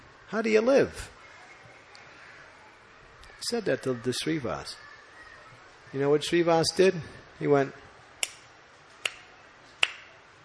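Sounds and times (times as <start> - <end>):
speech: 0.3 - 1.2, 3.4 - 4.9, 5.9 - 7.8
hand claps: 8.2 - 8.4, 9.0 - 10.1.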